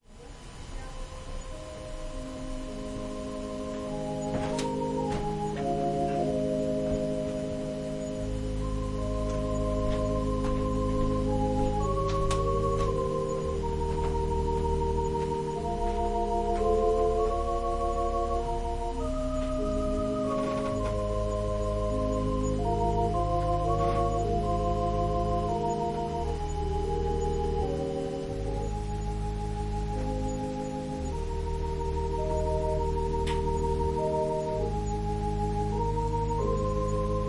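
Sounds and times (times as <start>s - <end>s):
organ prelude: 0.0s - 37.2s.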